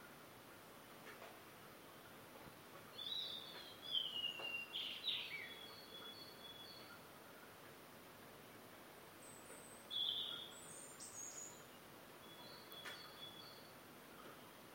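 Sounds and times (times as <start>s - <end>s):
early morning birds singing right outside the window: 2.9s - 7.1s, 9.1s - 14.6s.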